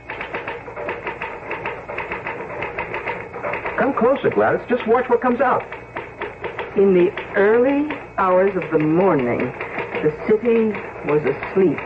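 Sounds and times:
typewriter typing: 0.0 - 11.8
speech: 3.8 - 5.8, 6.8 - 11.8.

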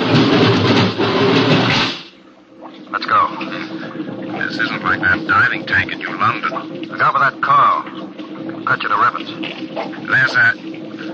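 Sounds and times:
water surging as the outer door of a diving lock opens: 0.0 - 11.1
speech: 4.9 - 8.1, 8.7 - 10.7.

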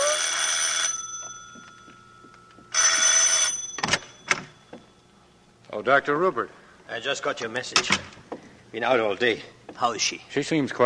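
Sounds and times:
harsh shrill bell ringing: 0.0 - 5.0
speech: 5.8 - 8.1, 8.7 - 10.8.

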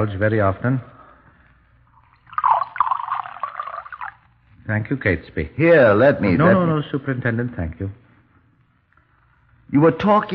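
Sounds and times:
speech: 0.0 - 0.9, 4.7 - 8.0, 9.7 - 10.3
beer being poured into a glass: 1.9 - 4.3.

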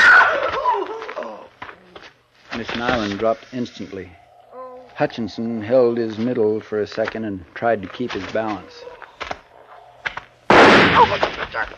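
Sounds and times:
speech: 2.7 - 4.2, 5.0 - 8.9, 11.0 - 11.7
gunshot fired at a man's head: 10.5 - 11.6.

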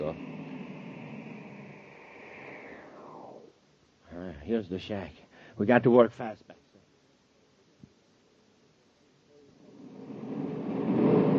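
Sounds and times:
spaceship coming in to land: 0.0 - 3.6, 9.6 - 11.3
speech: 4.5 - 6.6.

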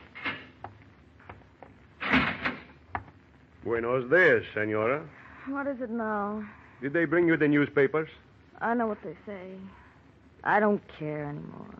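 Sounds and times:
cell door being opened: 2.0 - 2.7
speech: 3.6 - 9.8, 10.4 - 11.7.

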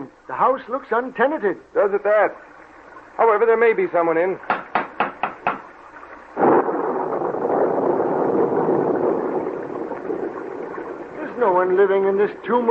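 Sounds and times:
speech: 0.3 - 2.5, 3.2 - 4.5, 11.7 - 12.6
thunderstorm: 6.4 - 11.3.

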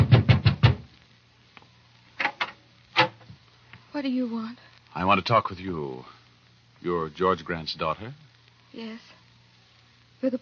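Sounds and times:
knocking at a door: 0.0 - 0.9
speech: 4.0 - 6.2, 6.8 - 9.2, 10.2 - 10.4.

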